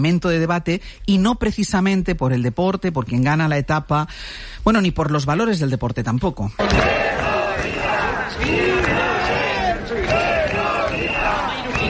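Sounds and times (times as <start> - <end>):
speech: 0.0 - 7.3
hundreds of protesters shouting in Bilbao: 6.6 - 11.8.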